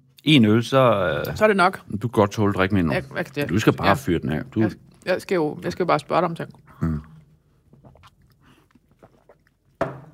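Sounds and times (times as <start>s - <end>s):
speech: 0.2s - 6.9s
chewing and biting grilled chicken: 7.6s - 9.8s.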